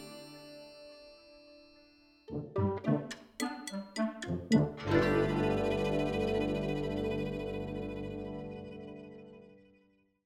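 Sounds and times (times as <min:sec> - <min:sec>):
driving Slavic folk hybrid music: 0:02.3 - 0:09.0.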